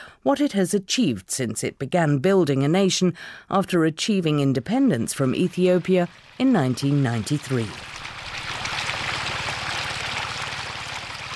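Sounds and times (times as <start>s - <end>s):
speech: 0.2s - 8.0s
water running through a small irrigation channel into a vegetable bed in Eritrea: 5.2s - 11.3s.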